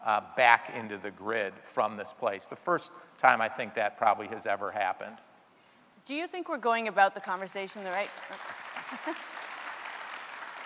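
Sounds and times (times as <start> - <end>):
speech: 0.0 - 5.3, 6.1 - 9.3
crowd applauding: 8.0 - 10.6.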